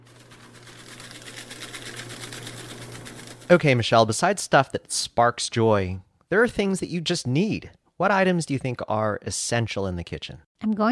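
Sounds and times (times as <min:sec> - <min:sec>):
paper shredder shredding paper: 0:00.0 - 0:04.0
speech: 0:03.5 - 0:10.8.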